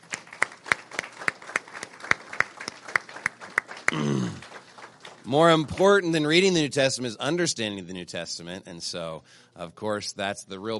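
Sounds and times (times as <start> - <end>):
audience clapping: 0.0 - 6.6
speech: 5.3 - 10.7.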